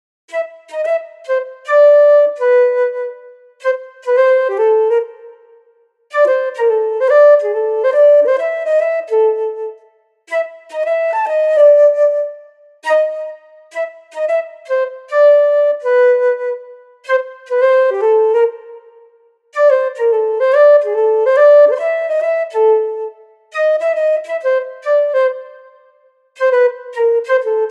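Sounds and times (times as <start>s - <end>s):
flute: 0.3s - 27.6s.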